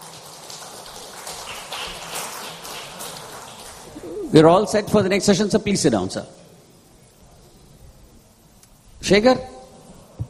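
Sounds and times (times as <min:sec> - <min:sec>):
audience applause: 0:00.0 - 0:04.3
speech: 0:04.0 - 0:06.4, 0:09.1 - 0:09.6.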